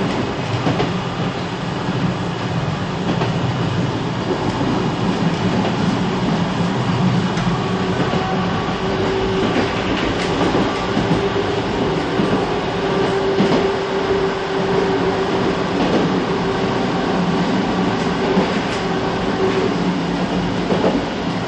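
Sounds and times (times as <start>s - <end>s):
French tram starting heard from interior: 0.0s - 21.4s.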